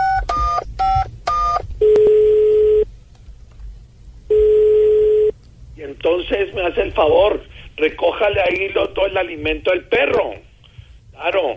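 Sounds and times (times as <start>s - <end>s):
telephone ringback tones: 0.0s - 2.8s, 4.3s - 5.3s
quiet telephone line noise: 0.0s - 11.5s
speech: 6.1s - 10.5s, 11.2s - 11.5s.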